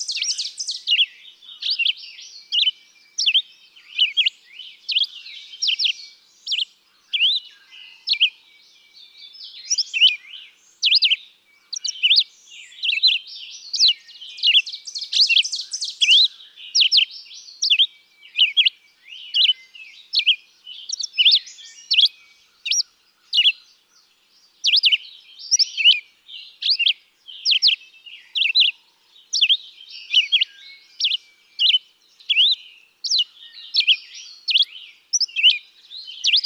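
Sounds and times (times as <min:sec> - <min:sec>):
Red-eyed Vireo singing: 0:00.0 - 0:36.4.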